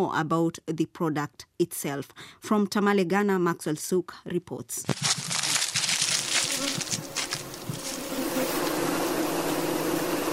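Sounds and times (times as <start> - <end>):
speech: 0.0 - 5.3
crackling and rustling: 4.8 - 8.8
swarm of bees buzzing in an apiary: 5.3 - 10.3.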